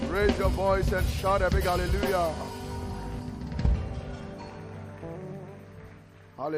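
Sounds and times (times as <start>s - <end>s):
speech: 0.2s - 2.5s
audience clapping: 1.4s - 6.5s.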